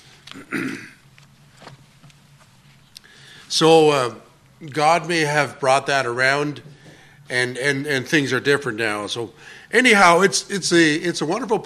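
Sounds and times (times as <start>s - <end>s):
faint soft throat sounds: 0.2s - 1.0s
person clearing throat with something stuck in it: 0.3s - 1.0s
speech: 0.4s - 0.9s, 3.6s - 6.7s, 7.3s - 11.6s.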